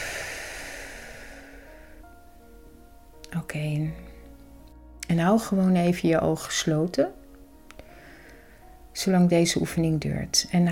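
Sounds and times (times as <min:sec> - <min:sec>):
long breath blown out through the mouth in a relaxation exercise: 0:00.0 - 0:02.2
speech: 0:03.4 - 0:04.1, 0:05.1 - 0:07.2, 0:09.0 - 0:10.7.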